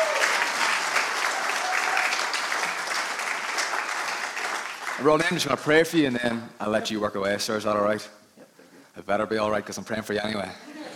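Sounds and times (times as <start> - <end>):
audience round of applause: 0.0 - 5.9
speech: 5.0 - 8.2, 9.0 - 10.7.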